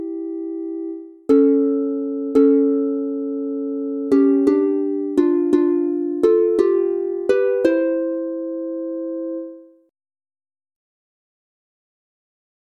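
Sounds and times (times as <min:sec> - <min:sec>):
two-part harp piece in C major: 0:00.0 - 0:09.8.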